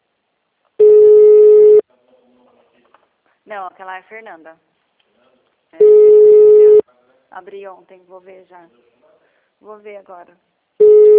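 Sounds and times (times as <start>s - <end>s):
telephone busy signal tone: 0.8s - 1.8s, 5.8s - 6.8s, 10.8s - 11.1s
speech: 3.4s - 4.7s, 7.3s - 8.9s, 9.6s - 10.5s.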